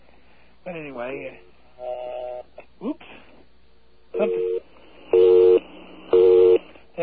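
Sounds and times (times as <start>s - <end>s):
speech: 0.7s - 2.2s
telephone busy signal: 4.2s - 6.7s.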